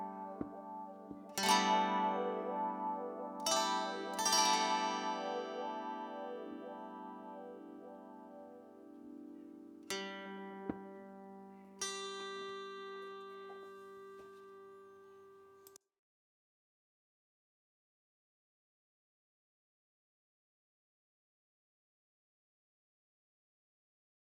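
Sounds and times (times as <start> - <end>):
kantele playing seven-string pentatonic melody: 0.0 - 15.6.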